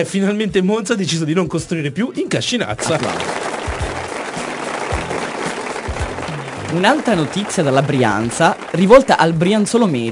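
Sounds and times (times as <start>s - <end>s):
speech: 0.0s - 3.5s, 6.7s - 10.0s
applause sound effect: 2.8s - 10.0s.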